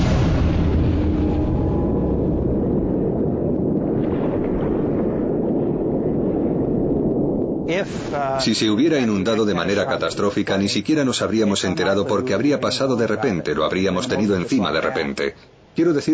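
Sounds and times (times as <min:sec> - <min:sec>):
explosion shaking a deep-sea bathyscaphe: 0:00.0 - 0:12.2
speech: 0:07.8 - 0:16.1.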